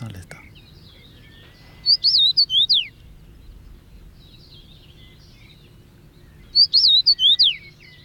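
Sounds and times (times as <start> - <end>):
finch song: 0.0 - 8.0.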